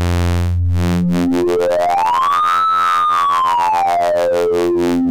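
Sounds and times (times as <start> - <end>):
DVCO synthesizer oscillator with sync and external LFO: 0.1 - 5.0.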